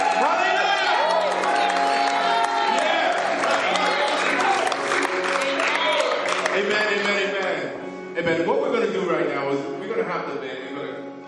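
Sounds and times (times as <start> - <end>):
audience cheering and applauding: 0.0 - 7.8
speech: 8.2 - 11.1.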